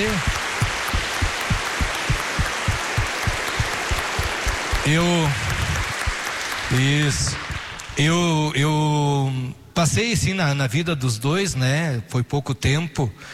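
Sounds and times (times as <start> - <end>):
audience applause: 0.0 - 8.0
speech: 4.8 - 5.4, 6.7 - 7.4, 8.0 - 13.3.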